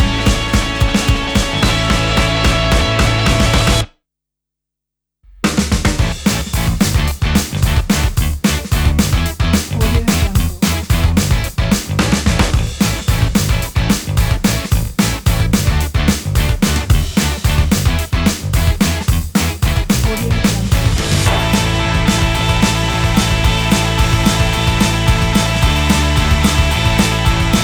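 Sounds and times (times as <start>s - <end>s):
energetic indie rock christmas music with jingle bells: 0.0s - 3.9s, 6.0s - 27.6s.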